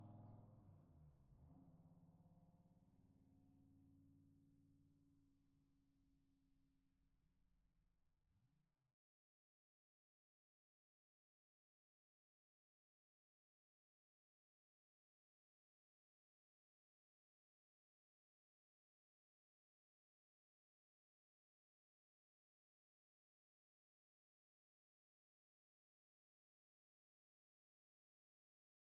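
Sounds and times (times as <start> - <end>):
Dodge Viper GTS engine: 0.0 - 5.7.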